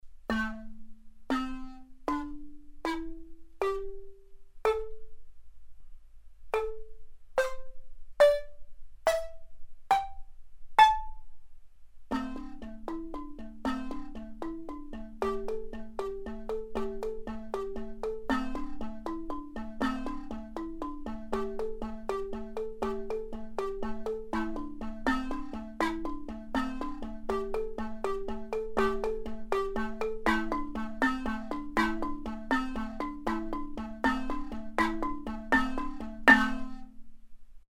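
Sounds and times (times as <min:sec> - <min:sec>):
balafon: 0:00.2 - 0:05.3, 0:06.5 - 0:11.4, 0:12.1 - 0:37.2.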